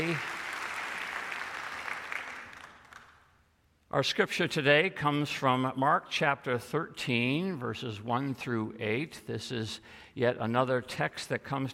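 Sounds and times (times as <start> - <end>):
speech: 0.0 - 0.3, 3.9 - 11.7
audience applause: 0.0 - 3.2.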